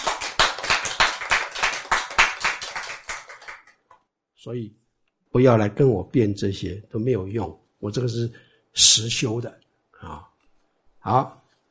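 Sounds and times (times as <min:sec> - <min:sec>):
hand clapping: 0:00.0 - 0:04.0
speech: 0:04.4 - 0:10.3, 0:11.0 - 0:11.4.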